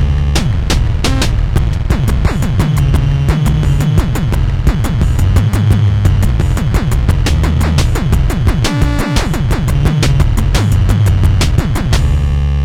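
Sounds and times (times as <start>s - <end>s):
808 drum machine beat: 0.0s - 12.5s.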